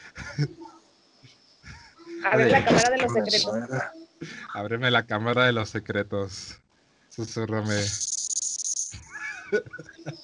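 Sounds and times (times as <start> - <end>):
laughter: 0.2 - 0.7, 2.3 - 3.8, 9.0 - 10.2
speech: 0.4 - 0.7, 2.2 - 6.6, 7.2 - 8.1, 9.5 - 10.2
person imitating rattlesnake hiss: 7.6 - 9.2.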